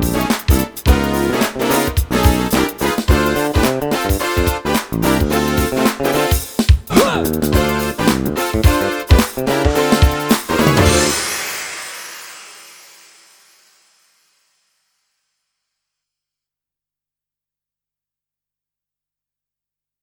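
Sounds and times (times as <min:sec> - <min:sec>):
mazurka dance music: 0:00.0 - 0:12.1.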